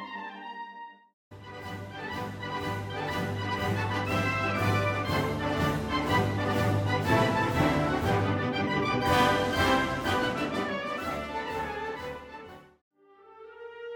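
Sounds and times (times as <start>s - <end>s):
concert band playing an overture: 1.4s - 12.4s.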